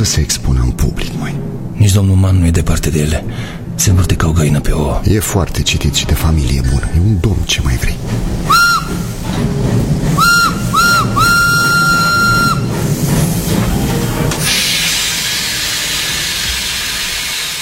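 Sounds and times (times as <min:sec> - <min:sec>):
speech: 0:00.0 - 0:09.0
steam train chugging into a station: 0:00.0 - 0:17.5
steam hissing from a steam train: 0:07.3 - 0:17.5
steam train whistle: 0:08.4 - 0:09.2, 0:10.1 - 0:12.8, 0:13.9 - 0:17.5.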